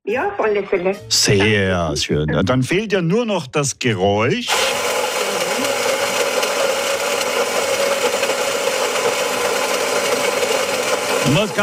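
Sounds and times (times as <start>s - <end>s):
speech: 0.1s - 4.9s
coffee machine's built-in grinder grinding beans: 4.5s - 11.6s.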